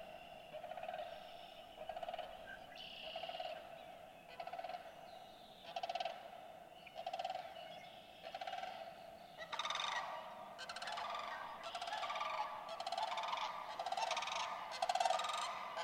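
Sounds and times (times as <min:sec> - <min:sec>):
sandhill crane calling: 0:00.5 - 0:03.7, 0:04.3 - 0:04.9, 0:05.7 - 0:06.3, 0:06.9 - 0:07.6, 0:08.2 - 0:15.8.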